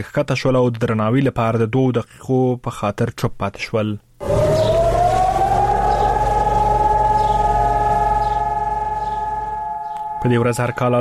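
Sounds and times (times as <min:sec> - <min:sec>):
speech: 0:00.0 - 0:04.3, 0:10.2 - 0:10.9
memorial alarm siren in Jerusalem on Holocaust Remembrance Day: 0:04.2 - 0:10.9.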